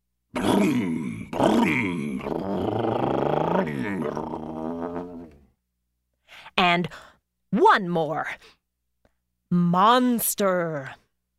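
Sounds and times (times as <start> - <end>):
voice imitating a motorcycle engine: 0.4 - 5.4
speech: 0.6 - 2.8, 6.8 - 8.6, 9.5 - 11.0.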